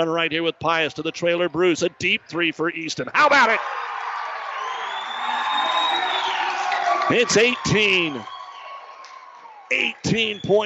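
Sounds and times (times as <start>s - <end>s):
speech: 0.0s - 3.9s, 7.1s - 8.4s, 9.7s - 10.6s
crowd cheering at a basketball game: 3.1s - 10.6s.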